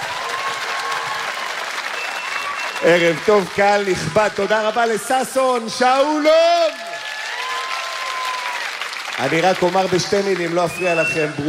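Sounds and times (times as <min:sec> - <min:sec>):
audience applause at a festival event: 0:00.0 - 0:11.4
speech: 0:02.8 - 0:06.8, 0:09.2 - 0:11.4.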